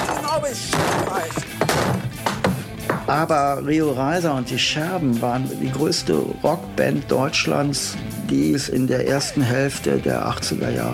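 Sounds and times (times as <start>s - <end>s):
table being smashed: 0.0s - 3.0s
speech: 3.1s - 10.9s.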